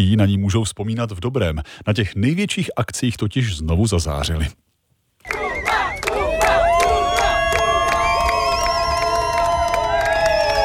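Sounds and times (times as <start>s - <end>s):
speech: 0.0s - 4.6s
crowd noise: 5.2s - 9.4s
teammates cheering and shouting names: 5.2s - 10.6s.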